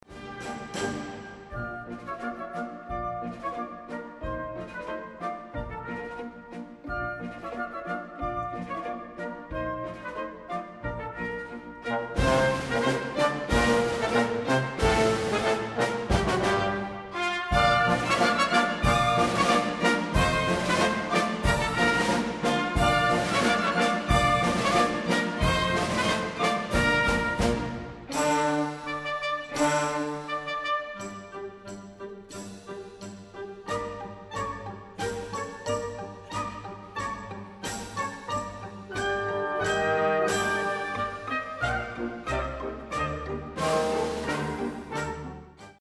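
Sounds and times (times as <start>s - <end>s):
Persian march music: 0.0s - 45.7s.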